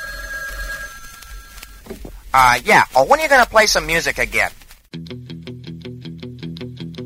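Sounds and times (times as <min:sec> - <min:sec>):
telephone bell ringing: 0:00.0 - 0:01.8
speech: 0:01.9 - 0:04.6.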